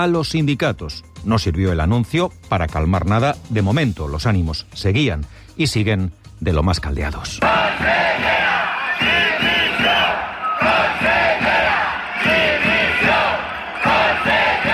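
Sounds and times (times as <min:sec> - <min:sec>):
speech: 0:00.0 - 0:08.4
teachers protesting before the Generalitat in Valencia chanting: 0:07.4 - 0:14.7.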